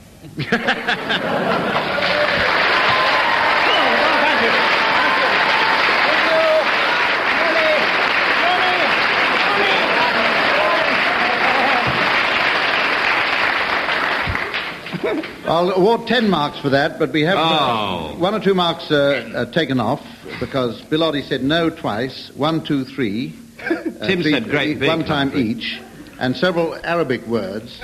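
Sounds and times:
speech: 0:00.2 - 0:01.5, 0:15.5 - 0:27.8
laughter: 0:00.2 - 0:07.8, 0:08.4 - 0:12.3, 0:14.8 - 0:15.6, 0:23.6 - 0:26.0
studio audience applause: 0:00.8 - 0:15.5.

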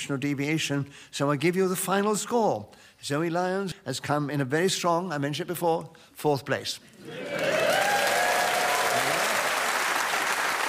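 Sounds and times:
speech: 0:00.0 - 0:07.9
audience round of applause: 0:07.0 - 0:10.6.

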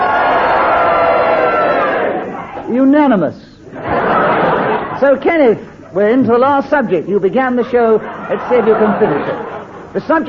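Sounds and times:
game show studio audience roaring: 0:00.0 - 0:02.8, 0:03.7 - 0:05.0, 0:08.1 - 0:10.2
speech: 0:02.9 - 0:03.5, 0:05.0 - 0:10.2
laughter: 0:03.7 - 0:06.0, 0:07.6 - 0:10.2.

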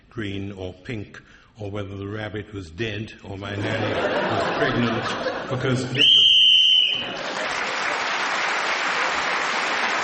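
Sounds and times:
speech: 0:00.2 - 0:06.2
laughter: 0:03.6 - 0:06.0, 0:06.9 - 0:08.1
game show whistle blown: 0:06.0 - 0:07.2
crowd applause: 0:06.5 - 0:10.0.

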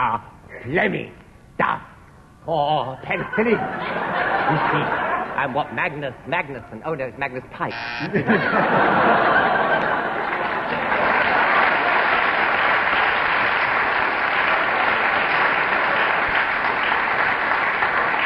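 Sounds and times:
speech: 0:00.0 - 0:09.4
laughter: 0:03.0 - 0:05.8, 0:08.0 - 0:12.4
audience round of applause: 0:08.7 - 0:18.2.

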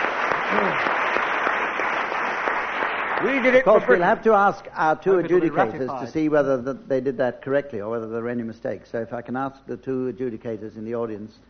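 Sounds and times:
studio audience applause: 0:00.0 - 0:04.2
speech: 0:00.5 - 0:00.9, 0:03.2 - 0:11.4.

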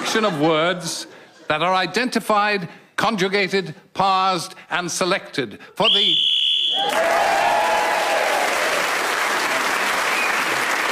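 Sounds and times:
speech: 0:00.1 - 0:07.5
shrill whistle blast: 0:05.8 - 0:07.1
audience applause: 0:06.7 - 0:10.9.

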